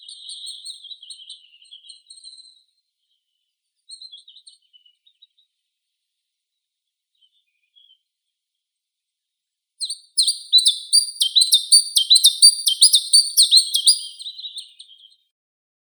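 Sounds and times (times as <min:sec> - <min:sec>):
chiffchaff Phylloscopus collybita singing: 0:09.8 - 0:14.3.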